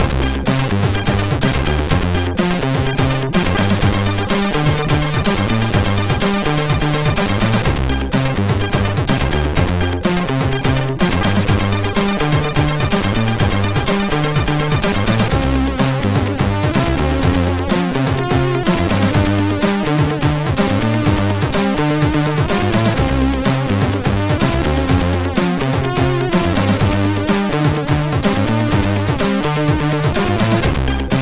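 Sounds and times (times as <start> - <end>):
funky ballad on CSG8580R5 sound chip: 0.0 - 31.2.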